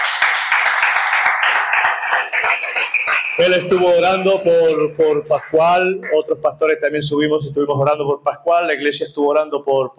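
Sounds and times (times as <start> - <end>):
audience applause: 0.0 - 3.8
speech: 2.8 - 9.9.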